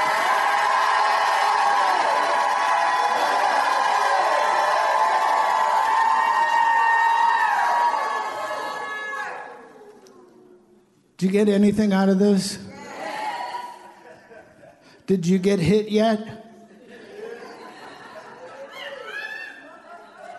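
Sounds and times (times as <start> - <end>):
crowd shouting and crying out: 0.0 - 9.8
speech: 11.2 - 12.6, 15.1 - 16.4
laughter: 13.7 - 15.0, 16.6 - 20.3.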